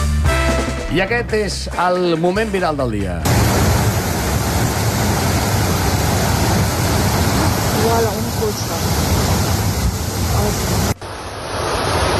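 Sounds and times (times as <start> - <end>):
speech: 0.9 - 3.6
torrential floodwater rushing down a stream bed: 3.3 - 12.1.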